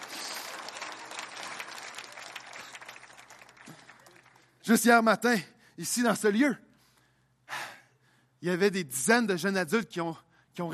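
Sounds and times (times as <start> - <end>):
audience applause: 0.0 - 4.6
speech: 4.7 - 6.7, 8.4 - 10.7.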